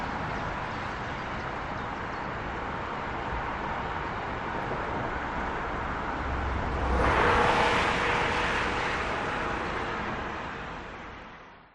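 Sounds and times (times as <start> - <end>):
moderately busy autobahn traffic in Germany: 0.0 - 11.7.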